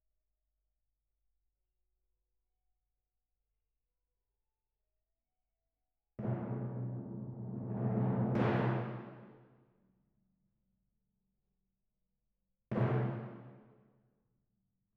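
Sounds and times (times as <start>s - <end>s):
timpani: 6.2s - 9.6s, 12.7s - 13.7s.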